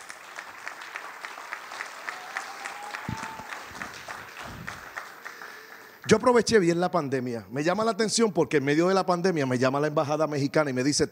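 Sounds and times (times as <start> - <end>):
audience applause: 0.0 - 6.0
speech: 6.1 - 11.1.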